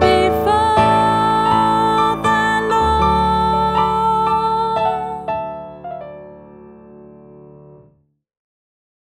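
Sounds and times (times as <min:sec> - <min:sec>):
soprano voice: 0:00.0 - 0:05.8.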